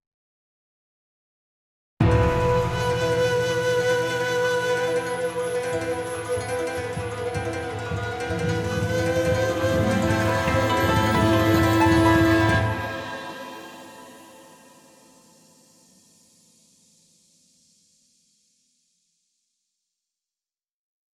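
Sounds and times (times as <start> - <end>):
falling musical stinger: 2.0 - 15.0.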